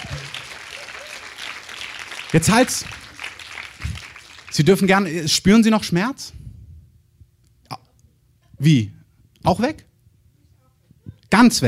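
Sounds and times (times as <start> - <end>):
audience applause: 0.0 - 5.1
speech: 2.3 - 3.0, 4.6 - 6.4, 8.6 - 9.9, 11.3 - 11.6.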